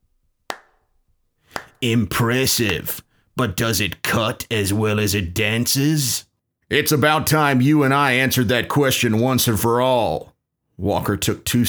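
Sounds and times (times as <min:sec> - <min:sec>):
slow clapping of calloused hands: 0:00.5 - 0:00.8, 0:01.5 - 0:01.8
speech: 0:01.8 - 0:11.6.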